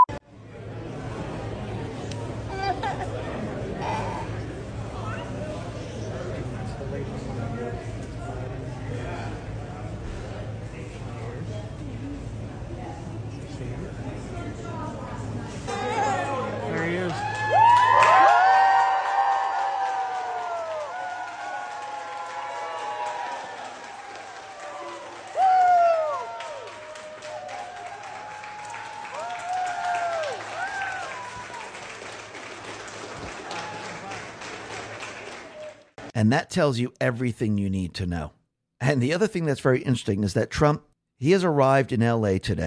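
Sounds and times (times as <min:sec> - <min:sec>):
murmur of chatter: 0:00.3 - 0:17.3
crowd cheering and whooping: 0:15.7 - 0:34.4
crowd applauding: 0:16.6 - 0:36.1
speech: 0:36.2 - 0:42.6.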